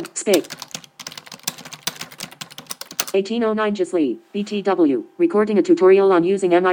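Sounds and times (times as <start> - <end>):
speech: 0.0 - 0.7, 3.1 - 6.7
typing a message on a computer keyboard: 0.0 - 3.2.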